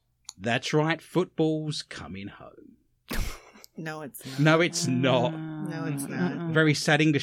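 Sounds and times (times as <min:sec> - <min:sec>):
speech: 0:00.4 - 0:02.4, 0:03.8 - 0:07.2
person snoring: 0:04.3 - 0:06.8.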